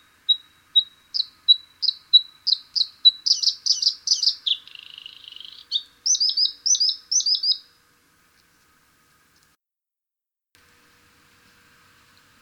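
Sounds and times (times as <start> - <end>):
Bluethroat Luscinia svecica singing: 0.3 - 7.6.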